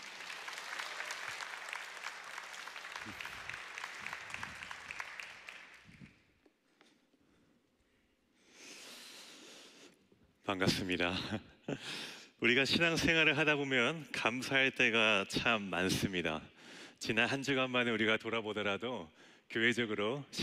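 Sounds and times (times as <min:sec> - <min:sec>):
audience applause: 0:00.0 - 0:06.0
speech: 0:03.0 - 0:03.3, 0:10.5 - 0:20.4.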